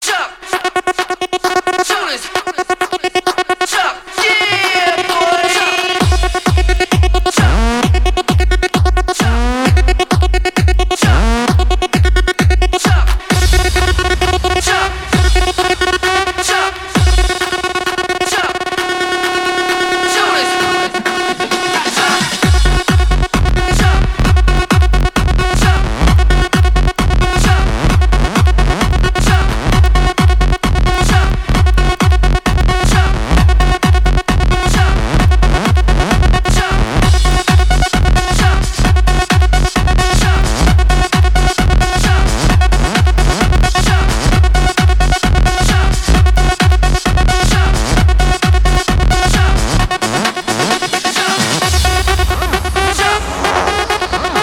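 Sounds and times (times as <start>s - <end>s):
electro remix music: 0.0s - 54.4s.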